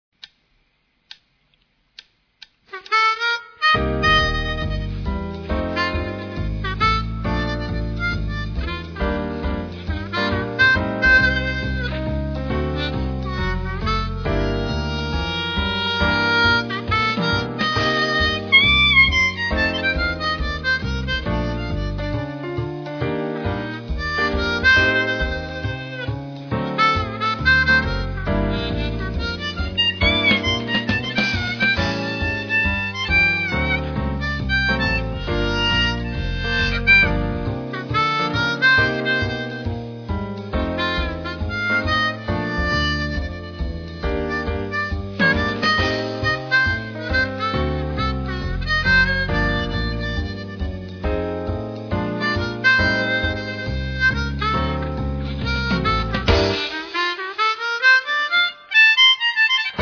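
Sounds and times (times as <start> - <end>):
harmonica: 2.7 - 59.8.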